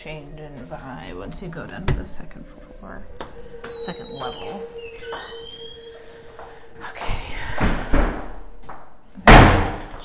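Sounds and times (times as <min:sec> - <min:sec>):
speech: 0:00.0 - 0:05.4
heavily slammed door: 0:07.4 - 0:08.4, 0:09.2 - 0:10.0.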